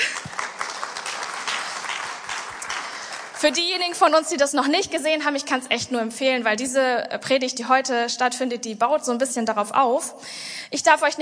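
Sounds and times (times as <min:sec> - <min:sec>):
audience applause: 0:00.0 - 0:04.2
speech: 0:03.4 - 0:11.2.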